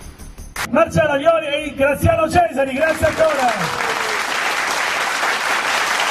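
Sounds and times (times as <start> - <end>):
speech: 0.8 - 3.9
studio audience on an Italian sports and entertainment show applauding: 2.8 - 6.0.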